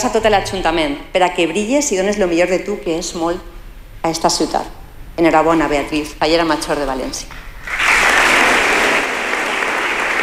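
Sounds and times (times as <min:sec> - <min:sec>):
speech: 0:00.0 - 0:07.8
applause for the mayor of Valencia: 0:07.6 - 0:10.2.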